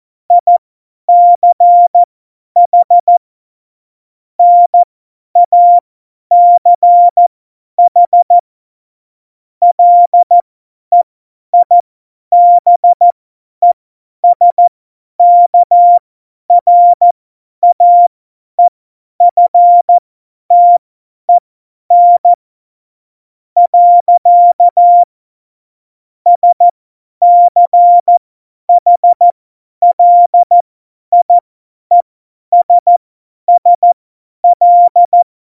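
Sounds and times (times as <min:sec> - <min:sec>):
CW Morse code beeps: 0:00.3 - 0:03.1, 0:04.4 - 0:07.2, 0:07.9 - 0:08.4, 0:09.7 - 0:11.0, 0:11.6 - 0:13.0, 0:13.6 - 0:20.8, 0:21.9 - 0:22.4, 0:23.6 - 0:25.1, 0:26.3 - 0:35.3.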